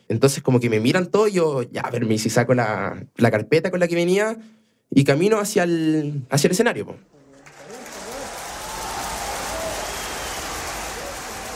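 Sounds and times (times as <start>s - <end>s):
speech: 0.1s - 7.2s
audience applause: 7.1s - 11.5s.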